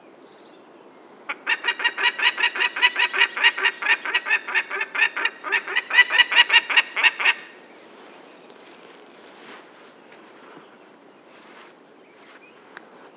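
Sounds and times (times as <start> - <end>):
peregrine falcon chattering cackle: 1.3 - 7.6.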